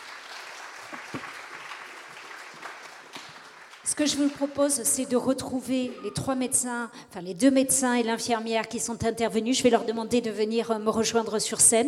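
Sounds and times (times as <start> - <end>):
audience applause: 0.0 - 4.6
speech: 3.9 - 11.8.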